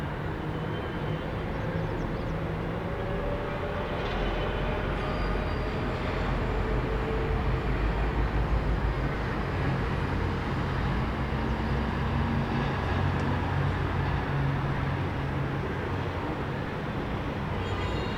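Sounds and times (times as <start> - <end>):
distant city ambience heard from above: 0.0 - 18.1.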